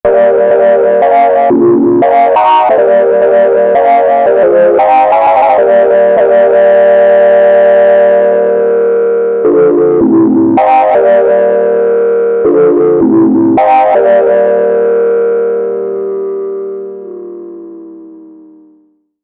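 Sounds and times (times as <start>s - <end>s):
fake three-oscillator synth tone: 0.1s - 19.0s.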